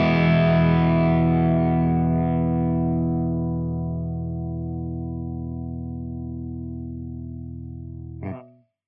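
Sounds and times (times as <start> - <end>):
ENGL SOV amplifier channel three drive through V30 speaker: 0.0 - 8.6.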